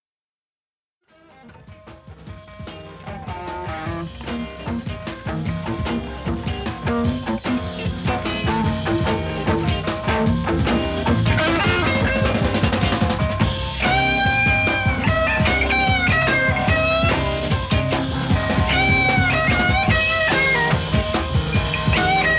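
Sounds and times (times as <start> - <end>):
instrumental music: 1.1 - 22.3.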